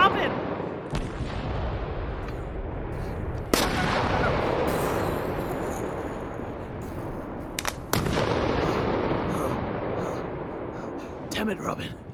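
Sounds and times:
bombs exploding: 0.0s - 11.2s
dense crackling and rumbling roar: 1.0s - 11.3s
small pops: 7.6s - 8.2s
speech: 11.4s - 12.0s.

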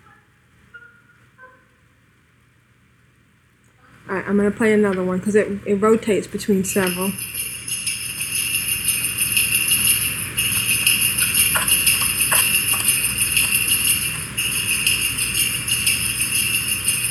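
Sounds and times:
speech: 4.1s - 7.5s
jingling bells in a video game: 6.1s - 17.0s
brief tapping clicks: 6.8s - 17.0s.

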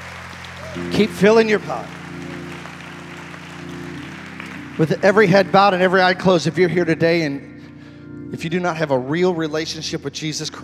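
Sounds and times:
audience hand clapping in praise: 0.0s - 6.6s
speech: 0.7s - 2.0s, 4.8s - 7.5s, 8.3s - 10.6s.

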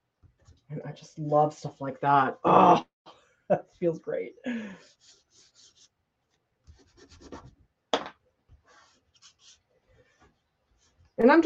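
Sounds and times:
speech: 0.7s - 2.9s, 3.5s - 5.2s, 11.2s - 11.4s
drawing tool worked on its side and edge: 4.8s - 5.9s, 8.6s - 11.1s.

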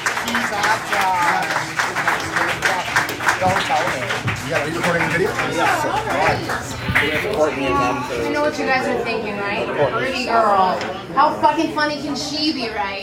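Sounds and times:
audience clapping: 0.0s - 8.1s
voices chattering and calling out: 0.0s - 13.0s
speech: 3.4s - 13.0s.

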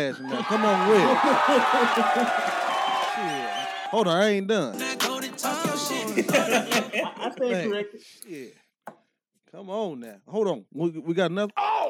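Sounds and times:
laughter: 0.0s - 2.6s, 5.7s - 7.9s
speech: 0.0s - 4.8s, 5.4s - 8.6s, 9.5s - 11.7s
audience round of applause: 0.4s - 3.9s.

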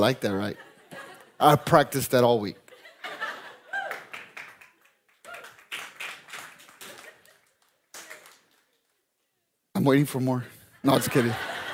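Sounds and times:
speech: 0.0s - 0.7s, 1.4s - 3.2s, 9.8s - 11.5s
laughter: 0.0s - 4.4s, 6.7s - 7.6s, 10.6s - 11.7s
audience clapping: 2.6s - 9.3s.

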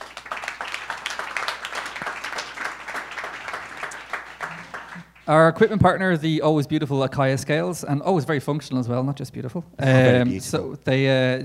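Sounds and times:
audience applauding: 0.0s - 5.3s
speech: 5.3s - 11.4s.

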